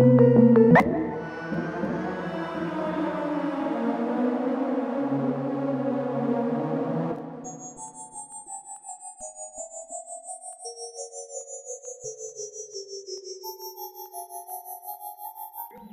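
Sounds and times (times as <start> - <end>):
hybrid synthesizer patches: 0.6 - 8.1.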